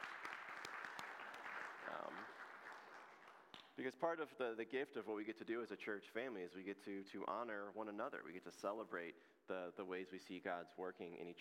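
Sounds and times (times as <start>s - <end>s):
audience applause: 0.0s - 3.6s
speech: 1.9s - 2.4s, 3.8s - 11.3s.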